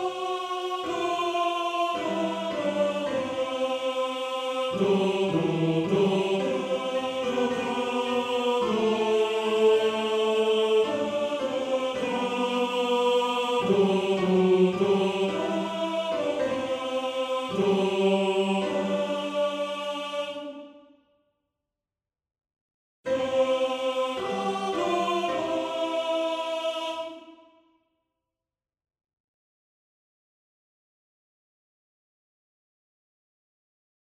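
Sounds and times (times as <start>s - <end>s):
male choir with tenor: 0.0s - 20.9s, 23.1s - 27.6s.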